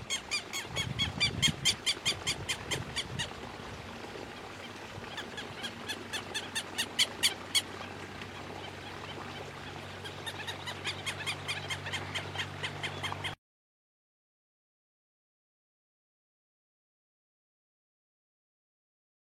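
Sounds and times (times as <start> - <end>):
Southern lapwing uttering loud strident arched notes: 0.0 - 3.4, 4.3 - 13.4.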